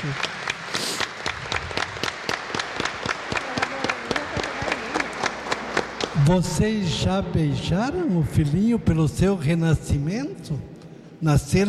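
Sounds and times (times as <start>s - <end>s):
speech: 0.0s - 0.8s, 6.2s - 11.6s
audience applause: 0.0s - 6.3s.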